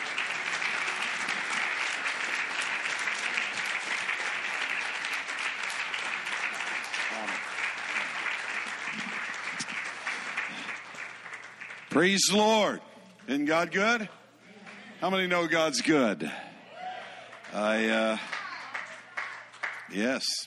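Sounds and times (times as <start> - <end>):
standing church congregation clapping: 0.0 - 20.3
speech: 12.0 - 14.2, 15.0 - 16.4, 17.5 - 18.3, 19.9 - 20.4.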